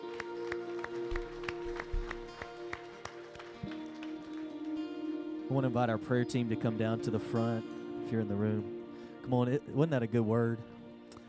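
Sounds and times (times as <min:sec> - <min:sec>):
audience clapping in steady rhythm: 0:00.0 - 0:05.8
sustained droning musical chord: 0:00.0 - 0:11.2
speech: 0:05.5 - 0:10.7.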